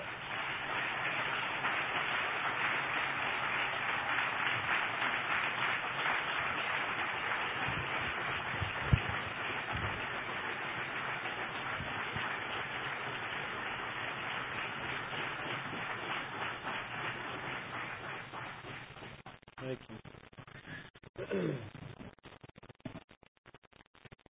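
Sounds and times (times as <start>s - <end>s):
audience applause: 0.0s - 19.8s.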